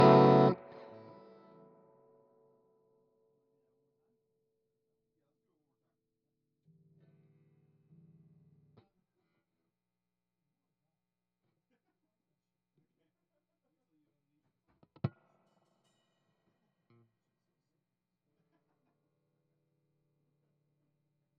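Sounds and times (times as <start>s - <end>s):
guitar: 0.0s - 3.0s, 6.7s - 8.9s, 14.7s - 15.4s.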